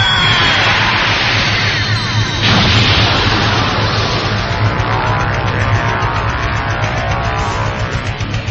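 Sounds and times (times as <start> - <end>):
transformation sound effect: 0.1 - 8.4.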